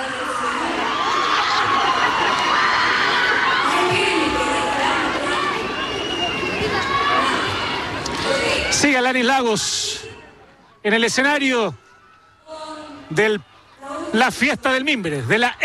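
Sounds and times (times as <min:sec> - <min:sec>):
scattered shouts, whoops and cheers including children's voices: 0:00.0 - 0:08.8
festival crowd roar at the Expo Mimbre in Chimbarongo: 0:00.0 - 0:15.6
speech: 0:09.0 - 0:10.0, 0:10.8 - 0:11.8, 0:13.1 - 0:13.5, 0:14.1 - 0:15.6.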